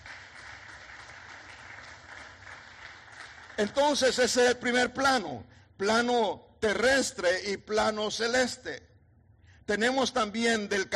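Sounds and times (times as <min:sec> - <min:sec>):
audience clapping hands: 0:00.0 - 0:04.2
speech: 0:03.6 - 0:08.9, 0:09.7 - 0:10.9.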